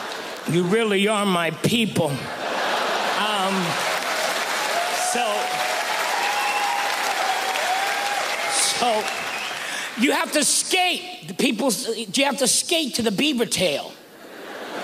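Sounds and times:
speech: 0.5 - 2.4, 5.2 - 5.6, 8.8 - 9.2, 10.0 - 14.0
audience applause: 2.7 - 10.0
person speaking and laughing: 3.0 - 3.8.

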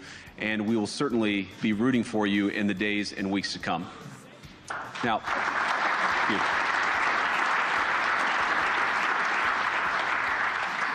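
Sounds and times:
speech: 0.4 - 4.2, 5.0 - 5.6, 6.3 - 6.6
audience applause: 4.7 - 10.9.

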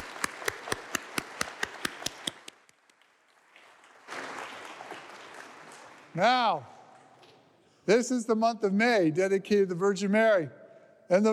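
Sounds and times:
round of applause: 0.0 - 2.5, 4.1 - 6.1
speech: 6.2 - 6.7, 7.9 - 11.3.

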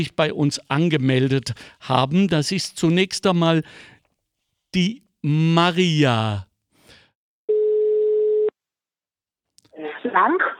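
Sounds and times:
speech: 0.0 - 3.9, 4.7 - 6.5, 10.0 - 10.5
telephone tone while placing a call: 7.5 - 8.6.

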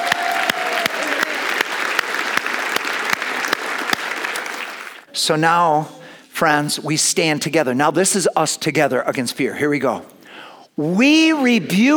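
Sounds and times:
audience clapping: 0.0 - 5.1
speech: 5.3 - 10.2, 10.8 - 11.9.

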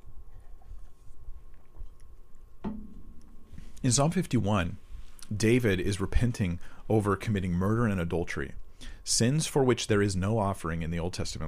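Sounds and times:
soft mouth sounds of someone drinking water: 0.0 - 2.5
low steady hum: 0.0 - 11.4
speech: 3.8 - 11.4.

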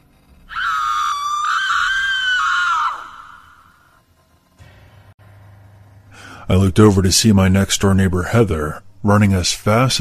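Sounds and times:
woman shrieking: 0.5 - 3.8
speech: 6.5 - 9.9.

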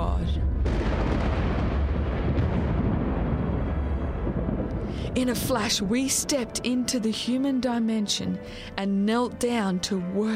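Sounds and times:
thunder and earthquake rumble: 0.0 - 7.2
speech: 5.2 - 10.3.

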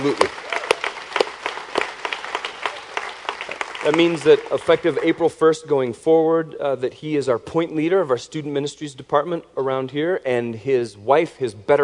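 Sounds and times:
speech: 0.0 - 0.4, 3.9 - 11.8
audience applauding: 0.0 - 5.2.

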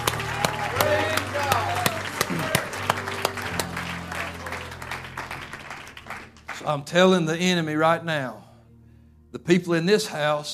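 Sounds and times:
audience shouting: 0.0 - 3.1
audience hand clapping: 0.0 - 6.8
speech: 6.7 - 8.4, 9.3 - 10.5.

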